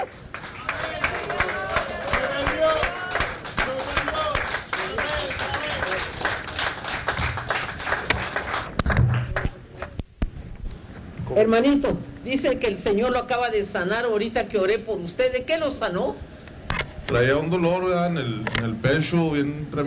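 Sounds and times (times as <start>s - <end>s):
audience applause: 0.0s - 10.0s
speech: 11.4s - 16.3s, 17.1s - 19.8s.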